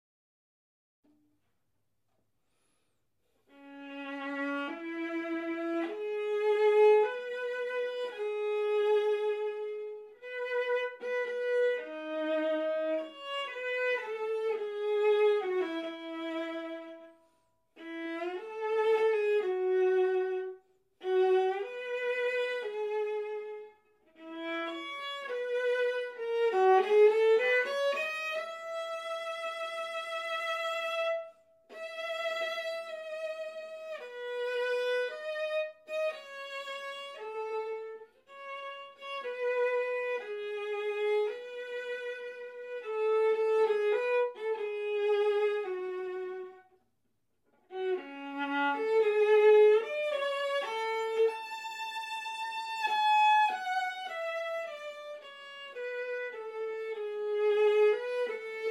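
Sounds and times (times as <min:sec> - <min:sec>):
viola: 0:02.5 - 0:46.9, 0:47.5 - 0:58.6.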